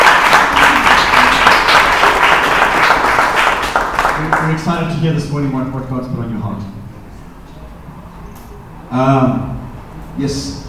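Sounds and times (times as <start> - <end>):
church service audience applause greeting a guest pastor: 0.0 - 4.7
speech: 4.5 - 6.8, 8.9 - 9.6, 10.2 - 10.6.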